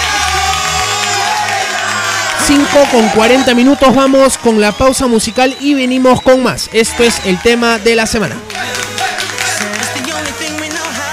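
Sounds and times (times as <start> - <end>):
crowd applause: 0.0 - 11.1
speech: 2.5 - 8.7.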